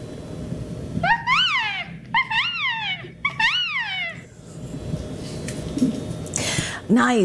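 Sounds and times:
low rumble: 0.0s - 7.2s
voice imitating a resplendent quetzal call: 1.0s - 4.3s.

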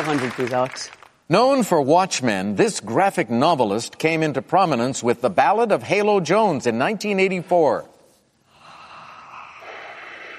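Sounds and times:
speech: 0.0s - 7.9s
heavy breathing: 8.4s - 10.3s.

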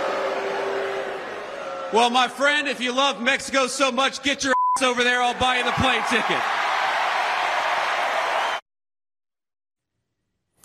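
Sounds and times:
crowd applause at a rally: 0.0s - 3.2s, 5.3s - 8.6s
speech: 1.9s - 6.6s.

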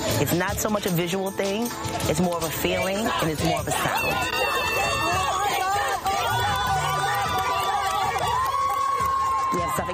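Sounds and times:
speech: 0.2s - 4.8s
crowd cheering and shouting at an outdoor park: 2.7s - 9.9s.

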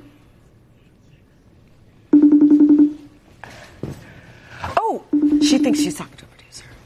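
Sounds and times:
telephone dialing beeps: 2.2s - 3.0s, 5.1s - 5.9s
speech: 5.6s - 6.3s.

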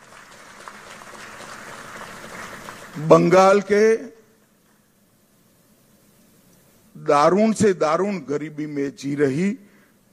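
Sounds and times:
audience applause: 0.0s - 3.3s
speech: 3.0s - 4.1s, 7.1s - 9.7s.

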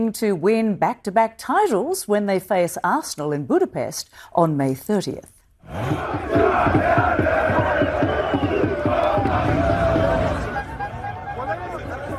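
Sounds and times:
speech: 0.0s - 7.6s
crowds celebrating in the streets of Paris: 5.7s - 12.1s.

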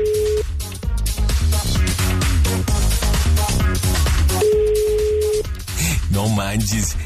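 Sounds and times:
ringback tone of an unanswered telephone call: 0.0s - 0.4s, 4.4s - 5.4s
loud music: 0.0s - 7.0s
speech: 6.5s - 7.0s.

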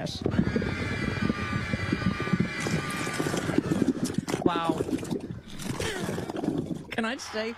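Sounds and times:
speech: 0.0s - 0.5s, 7.0s - 7.5s
fart sound effect: 1.5s - 6.8s.

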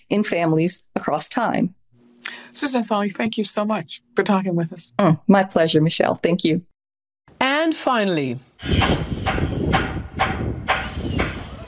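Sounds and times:
speech: 0.0s - 6.7s, 7.7s - 9.9s
workers hammering while repairing the roof of the Pechersk Lavra Monastery in Kyiv: 8.6s - 11.6s.

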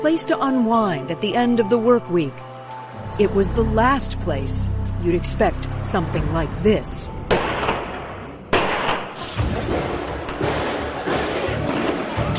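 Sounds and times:
speech: 0.0s - 2.5s, 3.2s - 7.2s
explosions: 7.2s - 12.2s
gunshots: 7.3s - 12.2s.

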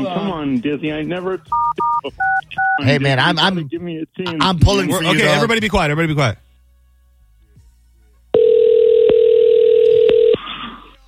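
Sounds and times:
speech: 0.0s - 6.4s
phone call line electronic beep: 8.4s - 10.4s.

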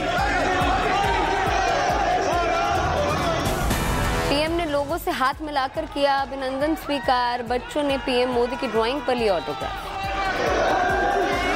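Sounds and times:
crowd of Indian community members chanting in a hotel in Italy: 0.0s - 4.0s, 9.6s - 11.5s
speech: 5.2s - 9.8s.

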